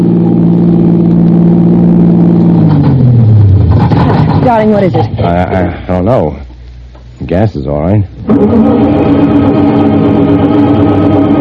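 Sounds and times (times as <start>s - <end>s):
car engine driving on a highway at night: 0.0s - 5.9s, 8.2s - 11.4s
speech: 4.5s - 6.4s, 7.2s - 9.9s.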